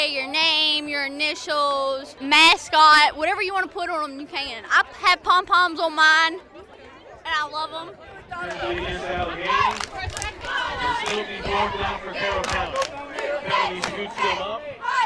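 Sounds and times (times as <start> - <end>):
speech: 0.0 - 6.5, 7.2 - 15.0
student cheering section at a football game: 8.4 - 15.0.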